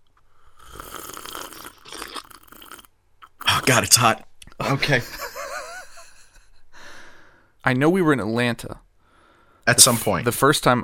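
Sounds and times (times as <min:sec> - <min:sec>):
person slurping hot tea: 0:00.5 - 0:03.8
speech: 0:03.7 - 0:05.2, 0:07.7 - 0:08.9, 0:09.7 - 0:10.8
laughter: 0:04.6 - 0:06.6.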